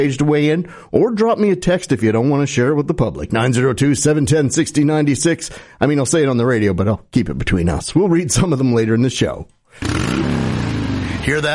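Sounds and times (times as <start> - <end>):
speech: 0.0 - 10.3, 11.3 - 11.5
motorcycle engine revving: 9.8 - 11.5.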